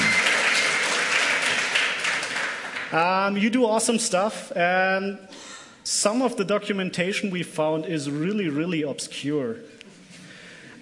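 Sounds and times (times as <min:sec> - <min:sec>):
audience applause: 0:00.0 - 0:03.0
speech: 0:02.9 - 0:09.8.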